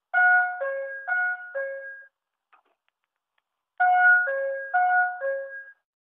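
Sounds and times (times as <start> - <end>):
high school bell ringing: 0.1 - 2.0, 3.8 - 5.7.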